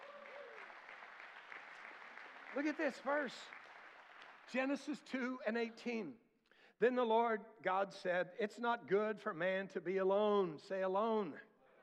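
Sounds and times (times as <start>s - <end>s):
audience clapping hands: 0.0s - 5.1s
speech: 2.5s - 3.6s, 4.5s - 6.2s, 6.8s - 11.5s.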